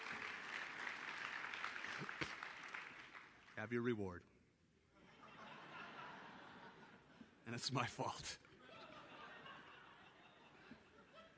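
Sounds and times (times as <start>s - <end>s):
audience clapping: 0.0s - 3.9s
speech: 3.6s - 4.3s, 7.5s - 8.4s
laughter: 5.0s - 7.4s, 8.5s - 11.3s.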